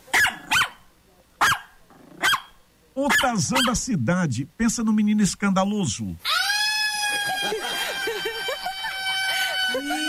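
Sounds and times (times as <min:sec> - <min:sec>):
small dog barking: 0:00.1 - 0:03.8
speech: 0:03.0 - 0:06.3, 0:07.2 - 0:07.8
laughter: 0:06.8 - 0:10.0.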